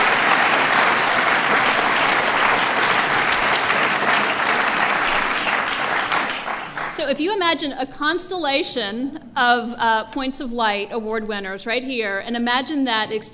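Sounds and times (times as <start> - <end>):
audience applause: 0.0 - 7.0
speech: 7.1 - 13.3.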